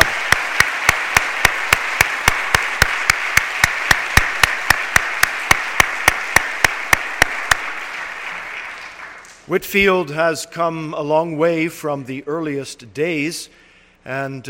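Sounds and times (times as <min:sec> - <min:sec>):
audience applause for graduates: 0:00.0 - 0:09.5
speech: 0:09.5 - 0:14.4.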